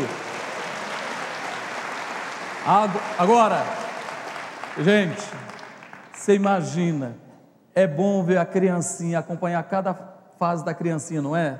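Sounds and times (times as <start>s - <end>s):
applause: 0.0s - 6.8s
speech: 2.6s - 3.8s, 4.8s - 5.5s, 6.2s - 7.2s, 7.8s - 11.5s.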